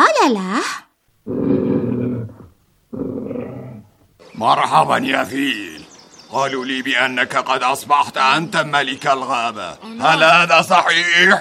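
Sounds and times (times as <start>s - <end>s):
speech: 0.2s - 1.4s, 4.4s - 11.4s
lion growling sound effect in a children's story: 1.2s - 5.8s.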